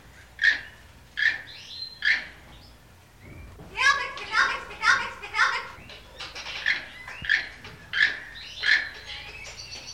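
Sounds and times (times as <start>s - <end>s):
parrot calls: 0.4s - 2.4s, 4.4s - 9.9s.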